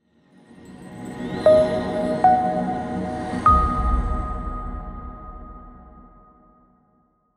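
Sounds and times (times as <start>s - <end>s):
jingle: 0.6s - 5.7s.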